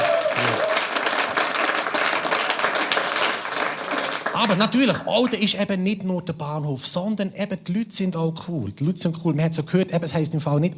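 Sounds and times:
audience applause: 0.0s - 5.3s
speech: 4.4s - 10.7s.

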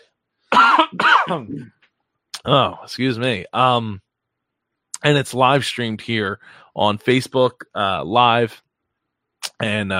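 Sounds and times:
person coughing after something went down the wrong pipe: 0.5s - 1.7s
speech: 0.9s - 1.8s, 2.4s - 4.0s, 5.0s - 8.6s, 9.6s - 9.9s.

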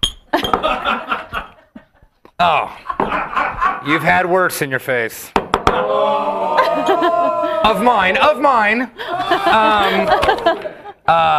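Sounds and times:
cocktail glasses clinking: 0.0s - 0.7s
laughter: 0.4s - 4.2s, 6.2s - 8.1s, 9.0s - 11.3s
speech: 2.4s - 2.9s, 3.8s - 11.3s.

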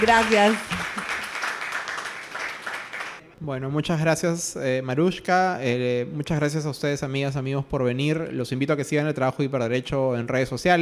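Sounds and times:
speech: 0.0s - 0.8s, 3.4s - 10.8s
audience applause: 0.0s - 3.2s.

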